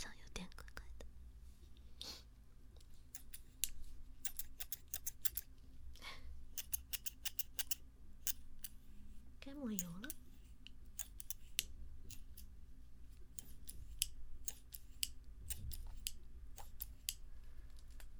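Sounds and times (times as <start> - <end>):
low steady hum: 0.0 - 18.1
short scissors worked open and shut by both handles: 3.2 - 5.5, 6.6 - 8.8, 9.8 - 12.5, 13.3 - 17.2
person speaking softly: 9.4 - 10.2.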